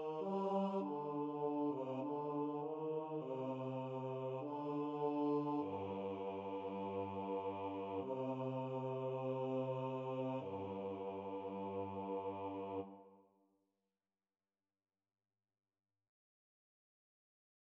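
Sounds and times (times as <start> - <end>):
choir singing: 0.0 - 13.2.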